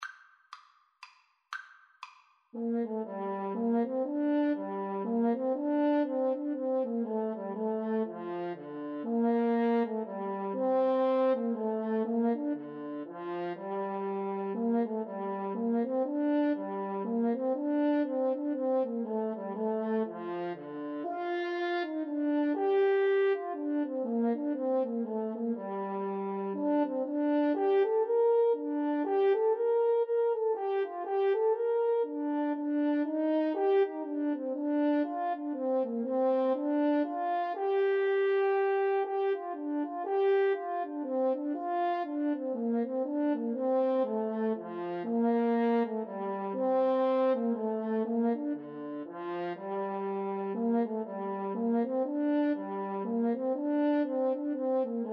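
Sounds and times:
french horn duet: 2.6s - 55.1s.

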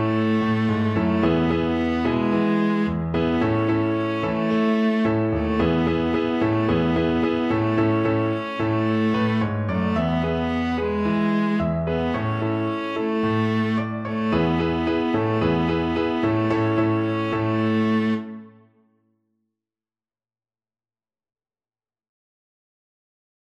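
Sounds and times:
viola: 0.0s - 18.7s.

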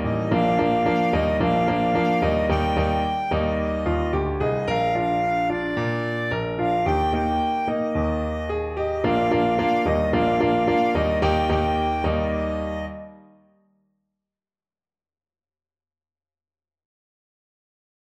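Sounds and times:
clarinet: 0.0s - 13.5s.

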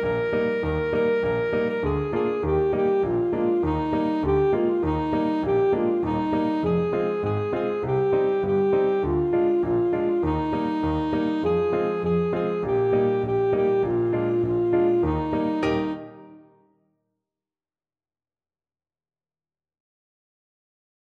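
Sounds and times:
alto saxophone: 0.0s - 16.6s.

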